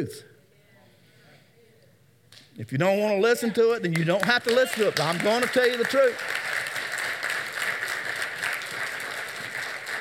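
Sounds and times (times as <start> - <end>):
speech: 0.0 - 0.3, 2.6 - 6.4
audience applause: 4.0 - 9.9.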